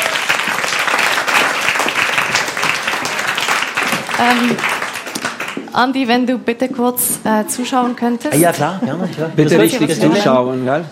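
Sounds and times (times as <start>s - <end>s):
audience applause: 0.0s - 5.8s
speech: 4.2s - 4.7s, 5.8s - 10.9s.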